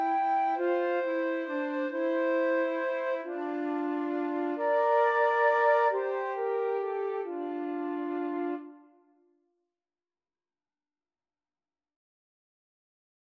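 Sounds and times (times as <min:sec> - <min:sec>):
flute trio playing: 0:00.0 - 0:08.9.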